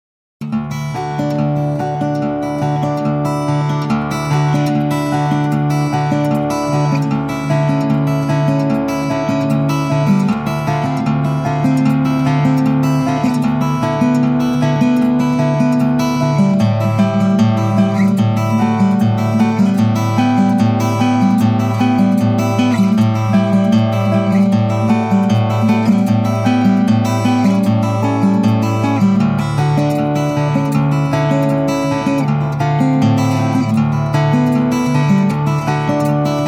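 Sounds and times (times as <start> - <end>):
guitar: 0.4 - 36.4.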